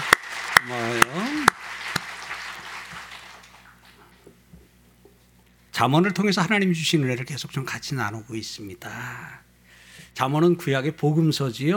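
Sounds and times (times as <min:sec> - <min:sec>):
audience applause: 0:00.0 - 0:04.2
speech: 0:00.6 - 0:01.1, 0:05.8 - 0:09.5, 0:10.2 - 0:11.7.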